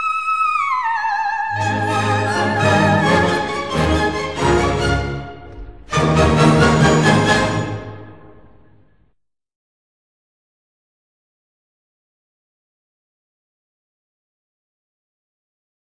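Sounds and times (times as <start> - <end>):
soprano singing: 0.0 - 7.9.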